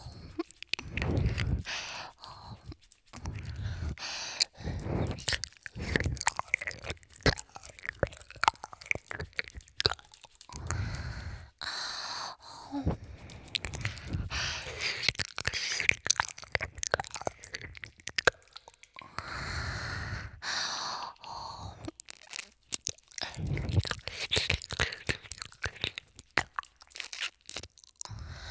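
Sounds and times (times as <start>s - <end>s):
hand stroking sounds: 0.0s - 6.2s
ear licking: 0.0s - 28.4s.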